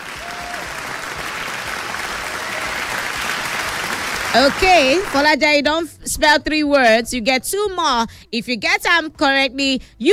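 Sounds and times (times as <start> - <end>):
applause: 0.0 - 5.3
speech: 4.4 - 10.1.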